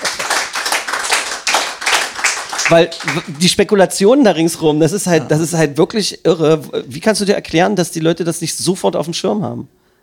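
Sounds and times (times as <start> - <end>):
audience clapping: 0.0 - 3.8
speech: 2.7 - 9.8.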